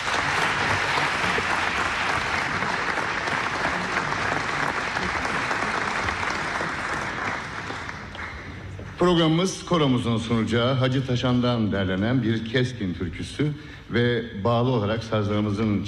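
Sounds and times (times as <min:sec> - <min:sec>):
audience applause at a Turkish folk music concert: 0:00.0 - 0:08.9
speech: 0:09.0 - 0:15.8.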